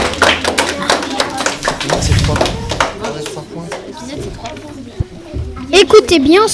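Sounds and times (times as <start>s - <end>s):
group applauding contestants: 0.0s - 4.0s
voices murmuring: 0.7s - 6.5s
speech: 5.8s - 6.5s.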